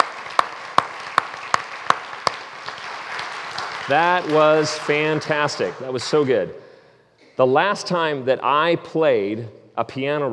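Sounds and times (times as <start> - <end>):
audience applause: 0.0 - 6.2
speech: 3.9 - 6.6, 7.4 - 10.3.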